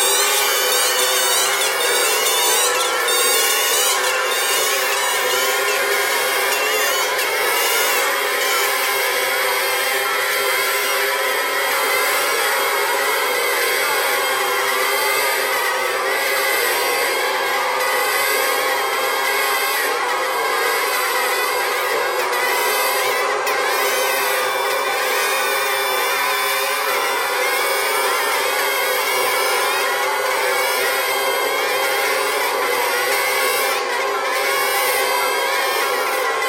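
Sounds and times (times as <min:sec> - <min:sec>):
bagpipe: 0:00.0 - 0:36.4.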